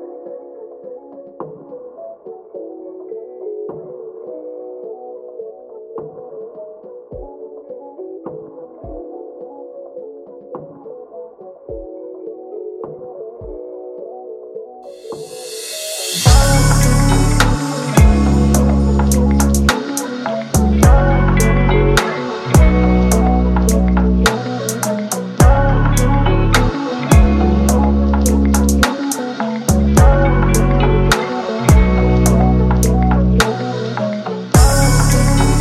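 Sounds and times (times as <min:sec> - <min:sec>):
rap beat: 0:15.7 - 0:35.5.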